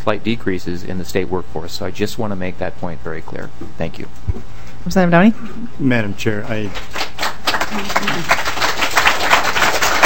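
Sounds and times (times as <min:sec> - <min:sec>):
speech: 0:00.0 - 0:07.0, 0:07.7 - 0:08.5
audience clapping in a large room: 0:06.5 - 0:10.0.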